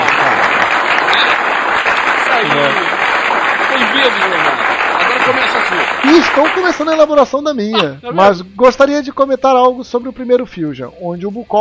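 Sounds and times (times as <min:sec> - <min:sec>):
applause: 0:00.0 - 0:07.2
speech: 0:04.0 - 0:04.7, 0:05.3 - 0:11.5.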